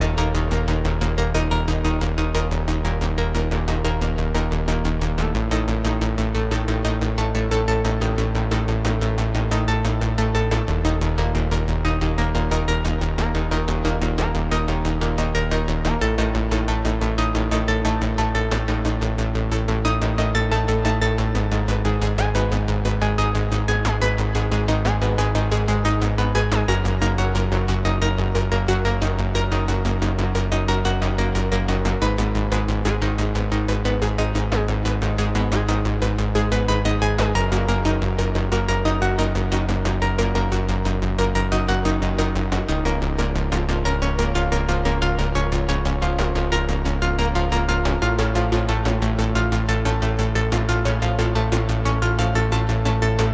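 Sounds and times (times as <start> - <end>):
pulse bass motors: 0.0 - 53.3.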